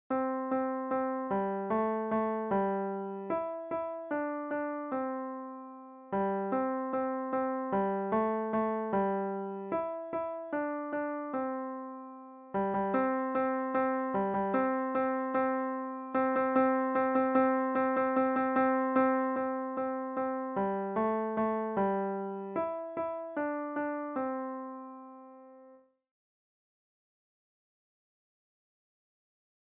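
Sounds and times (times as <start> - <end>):
beginner piano melody in eighth notes: 0.1 - 25.8.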